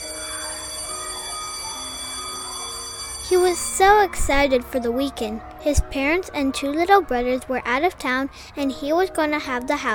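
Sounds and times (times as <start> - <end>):
school bell ringing: 0.0 - 5.5
speech: 3.3 - 9.9.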